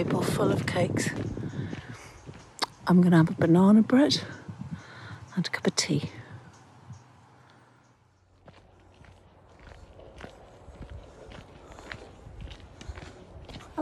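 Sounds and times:
speech: 0:00.0 - 0:01.4, 0:02.9 - 0:04.4, 0:05.4 - 0:06.2
footsteps walking along a canal towpath near Bathampton Mill: 0:00.0 - 0:03.6, 0:08.3 - 0:13.8.

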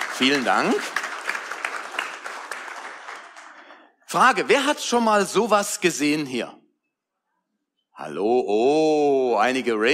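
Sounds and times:
audience applause: 0:00.0 - 0:03.9
speech: 0:00.2 - 0:01.0, 0:04.1 - 0:06.6, 0:08.0 - 0:09.9.

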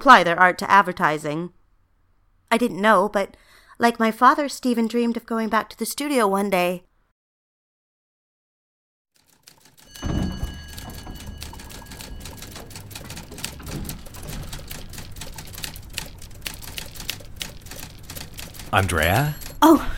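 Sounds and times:
speech: 0:00.0 - 0:01.6, 0:02.5 - 0:06.9, 0:18.7 - 0:19.9
typing up contracts in an office: 0:09.2 - 0:19.8.

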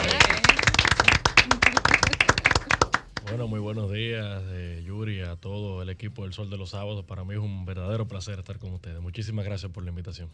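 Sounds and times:
studio audience applause: 0:00.0 - 0:03.4
speech: 0:03.3 - 0:10.3.

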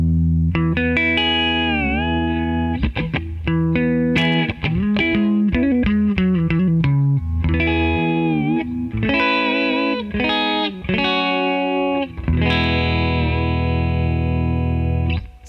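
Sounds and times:
StingRay electric guitar playing distorted lines: 0:00.0 - 0:15.4.

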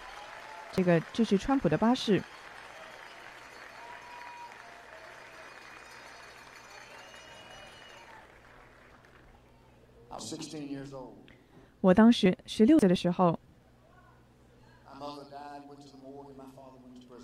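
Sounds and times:
audience applause: 0:00.0 - 0:09.6
speech: 0:00.8 - 0:02.4, 0:11.8 - 0:13.4.

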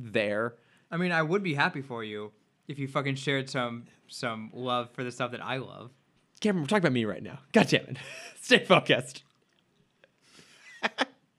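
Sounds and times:
speech: 0:00.0 - 0:09.3
laughter: 0:07.9 - 0:08.4, 0:10.7 - 0:11.0
chewing: 0:09.2 - 0:10.2.

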